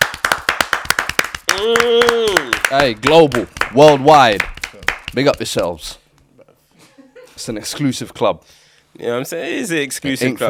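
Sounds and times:
small group clapping: 0.0 - 5.6
speech: 1.6 - 4.5, 5.2 - 6.0, 7.4 - 10.4.

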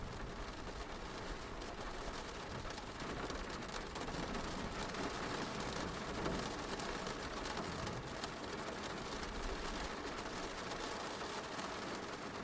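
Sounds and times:
rain falling: 0.0 - 12.4.

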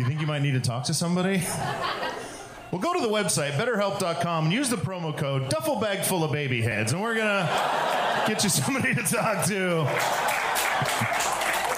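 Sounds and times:
laughter: 0.0 - 3.2, 6.9 - 11.7
speech: 0.0 - 11.3
audience clapping: 7.5 - 11.7.

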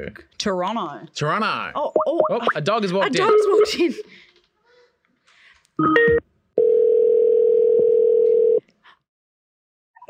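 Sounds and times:
speech: 0.0 - 4.2, 5.8 - 6.3
mixed phone dialing tones: 5.8 - 8.6.

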